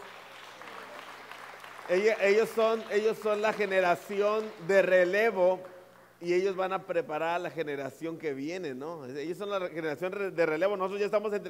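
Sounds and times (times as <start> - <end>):
audience applause: 0.0 - 6.1
speech: 1.9 - 11.4.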